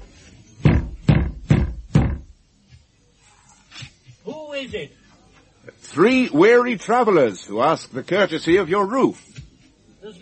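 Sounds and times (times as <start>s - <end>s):
knocking on a door: 0.6s - 2.4s
speech: 4.5s - 5.0s, 5.7s - 9.3s.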